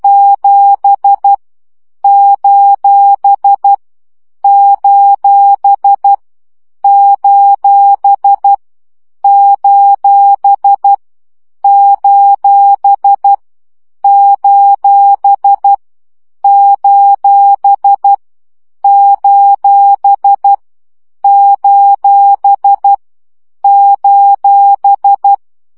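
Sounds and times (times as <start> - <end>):
CW Morse code practice beeps: 0.0 - 1.4, 2.0 - 3.8, 4.4 - 6.2, 6.8 - 8.6, 9.2 - 11.0, 11.6 - 13.4, 14.0 - 15.8, 16.4 - 18.2, 18.8 - 20.6, 21.2 - 23.0, 23.6 - 25.4.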